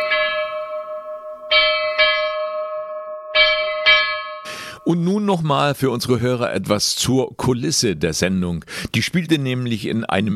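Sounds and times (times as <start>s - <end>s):
ship's bell ringing: 0.0s - 4.9s
speech: 4.9s - 10.3s.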